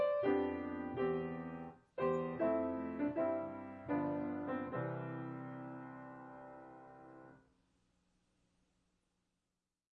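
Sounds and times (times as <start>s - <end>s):
larghetto piano piece: 0.0s - 7.4s.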